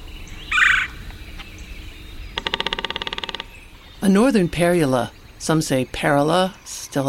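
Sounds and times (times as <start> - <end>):
red-bellied woodpecker calling: 0.0 - 7.0
red-bellied woodpecker drumming on an ancient snag: 0.5 - 4.8
speech: 4.0 - 7.0.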